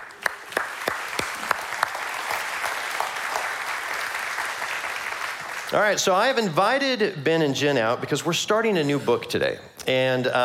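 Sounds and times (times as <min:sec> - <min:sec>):
church congregation applause welcoming guests on stage: 0:00.0 - 0:05.7
speech: 0:05.7 - 0:10.4.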